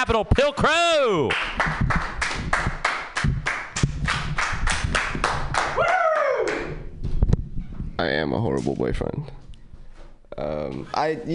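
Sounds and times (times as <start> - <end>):
speech: 0.0 - 2.1, 8.0 - 9.4, 10.4 - 11.3
small audience clapping: 1.2 - 6.8
person whooping: 5.8 - 6.9.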